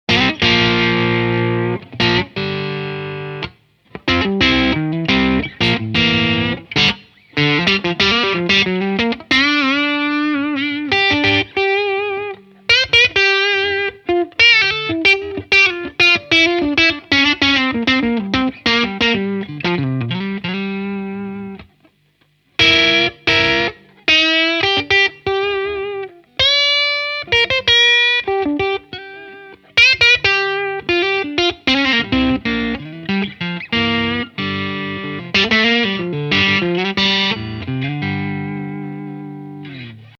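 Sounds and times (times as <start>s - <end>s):
electric guitar on neck pickup, slightly overdriven: 0.1s - 40.1s.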